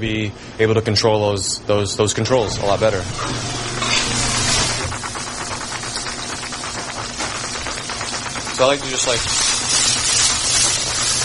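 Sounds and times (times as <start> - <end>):
speech: 0.0 - 3.8, 8.6 - 9.5
onion slowly sizzling in a pan: 3.2 - 11.2.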